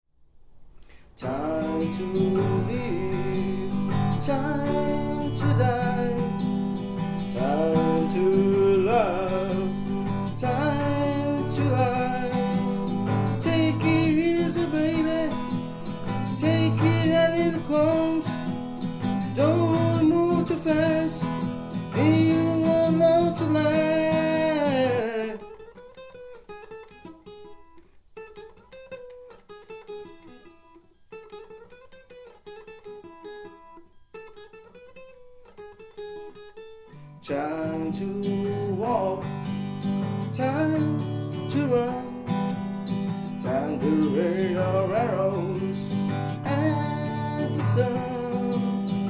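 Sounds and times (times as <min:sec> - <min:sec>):
acoustic cover song: 0:00.6 - 0:49.0.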